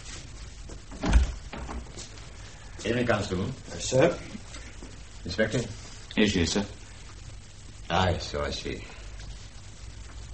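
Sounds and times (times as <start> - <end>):
door being opened: 0.9 - 1.9
speech: 2.8 - 4.4, 5.2 - 6.8, 7.9 - 8.9.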